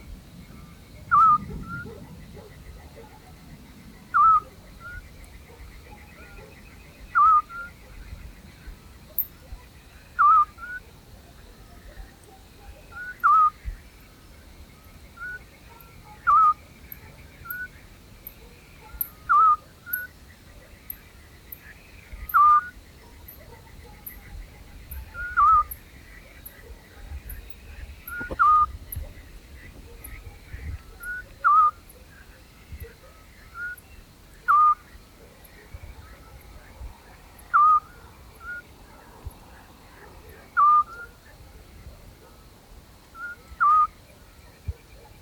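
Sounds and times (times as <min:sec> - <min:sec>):
Eurasian scops owl song: 0:01.1 - 0:02.0, 0:04.1 - 0:05.0, 0:07.1 - 0:07.8, 0:10.2 - 0:10.9, 0:12.7 - 0:13.7, 0:15.2 - 0:16.6, 0:18.9 - 0:20.1, 0:22.2 - 0:23.4, 0:24.9 - 0:25.8, 0:28.0 - 0:31.8, 0:34.4 - 0:34.9, 0:37.4 - 0:38.7, 0:40.4 - 0:41.2, 0:43.2 - 0:44.0.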